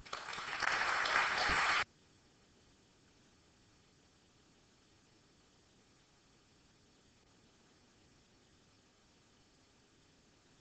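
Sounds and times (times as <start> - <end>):
audience applause welcoming a lecturer at the Perimeter Institute: 0.0 - 1.8.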